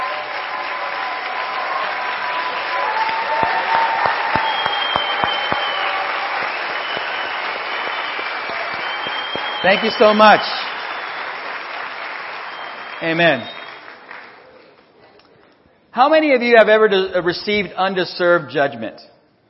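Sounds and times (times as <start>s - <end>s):
audience applause for military veterans: 0.0s - 14.9s
speech: 9.6s - 10.6s, 13.0s - 13.6s, 16.0s - 19.2s.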